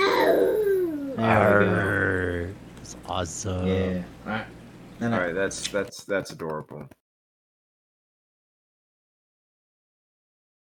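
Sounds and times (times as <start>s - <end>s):
young child imitating a dinosaur: 0.0s - 2.4s
speech: 1.2s - 7.0s.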